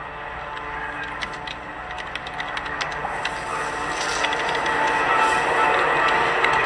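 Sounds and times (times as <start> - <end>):
keyboard clicking: 0.5 - 6.6.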